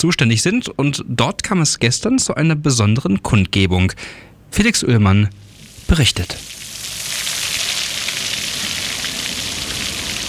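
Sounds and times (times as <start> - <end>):
speech: 0.0 - 6.6
water splashing in a fountain: 5.4 - 10.2.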